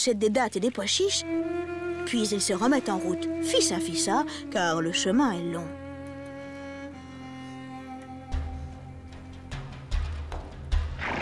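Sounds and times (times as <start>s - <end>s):
speech: 0.0s - 5.8s
horses' hooves clip-clopping: 9.1s - 11.2s
horse neighing: 11.0s - 11.2s.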